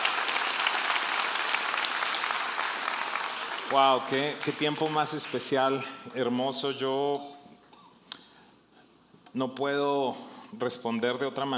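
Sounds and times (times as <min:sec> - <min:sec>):
crowd applause: 0:00.0 - 0:05.8
speech: 0:03.7 - 0:07.4, 0:09.3 - 0:11.5.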